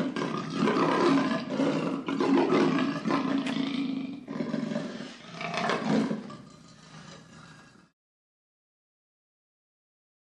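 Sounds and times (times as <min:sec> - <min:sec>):
leopard roaring: 0:00.0 - 0:07.9.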